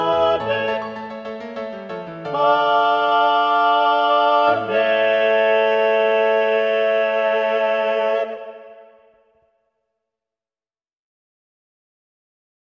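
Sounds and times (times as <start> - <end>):
SSA choir singing, balanced voices: 0.0 - 1.4, 2.2 - 9.1.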